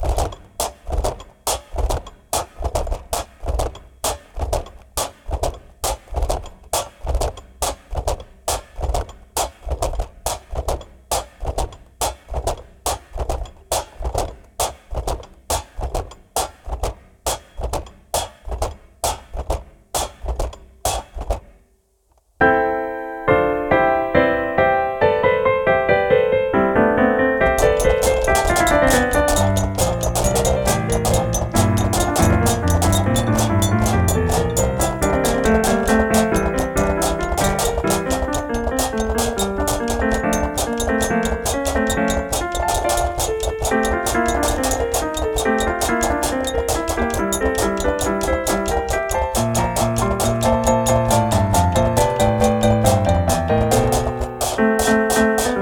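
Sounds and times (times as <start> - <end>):
prepared drum kit: 0.0 - 21.6, 27.4 - 55.5
pianoforte: 22.4 - 55.5.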